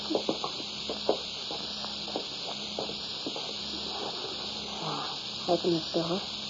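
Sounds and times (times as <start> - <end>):
footsteps walking down cellar steps: 0.0 - 4.2
speech: 5.5 - 6.4.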